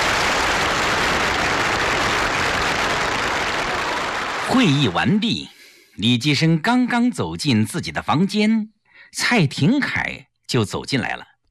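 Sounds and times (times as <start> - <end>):
warm applause from an audience: 0.0 - 5.1
speech: 4.5 - 11.3.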